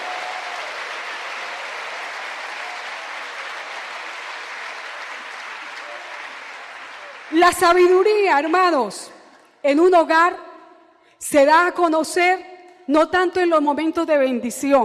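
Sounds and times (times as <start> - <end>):
audience applause: 0.0 - 8.7
speech: 7.3 - 10.4, 11.2 - 14.8.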